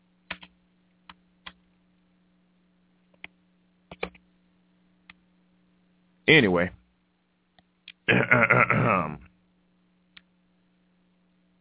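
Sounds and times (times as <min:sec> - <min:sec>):
low steady hum: 0:00.0 - 0:11.5
typing on a computer keyboard: 0:00.3 - 0:00.5, 0:03.9 - 0:04.2
speech: 0:06.3 - 0:06.8.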